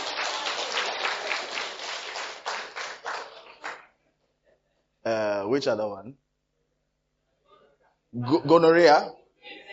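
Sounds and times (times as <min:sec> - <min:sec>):
audience applause: 0:00.0 - 0:03.9
speech: 0:05.0 - 0:06.3, 0:08.1 - 0:09.2.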